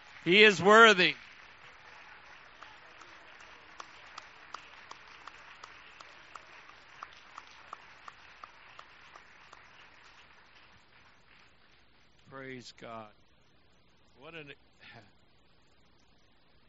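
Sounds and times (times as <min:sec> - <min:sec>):
audience clapping hands: 0:00.0 - 0:11.8
speech: 0:00.2 - 0:01.2, 0:12.6 - 0:13.2, 0:14.2 - 0:15.2.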